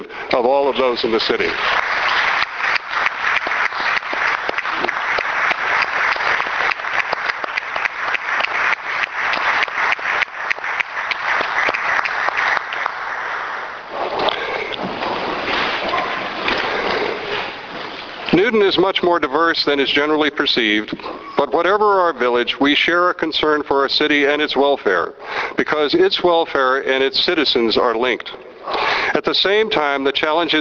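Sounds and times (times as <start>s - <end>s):
speech: 0.4s - 1.9s, 18.7s - 28.4s, 29.2s - 30.5s
audience standing and applauding: 1.2s - 18.2s.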